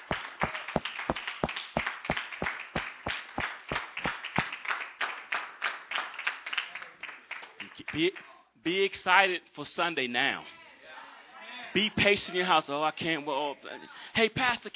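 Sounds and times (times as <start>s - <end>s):
audience clapping hands: 0.0s - 8.2s
speech: 8.0s - 10.6s, 11.7s - 14.7s.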